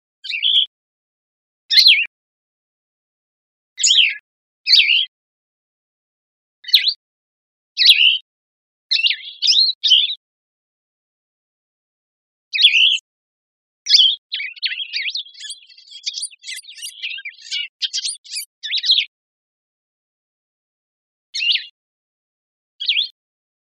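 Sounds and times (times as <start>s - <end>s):
bird chirping and twittering: 0.2s - 0.7s, 1.7s - 2.1s, 3.8s - 5.1s, 7.8s - 8.2s, 9.0s - 10.1s, 12.6s - 13.0s, 13.9s - 19.1s, 21.4s - 21.8s, 22.8s - 23.1s.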